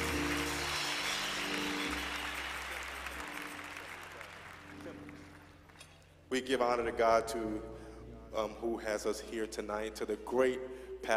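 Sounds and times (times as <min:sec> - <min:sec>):
audience clapping hands in praise: 0:00.0 - 0:06.0
speech: 0:06.3 - 0:07.7, 0:08.4 - 0:11.1.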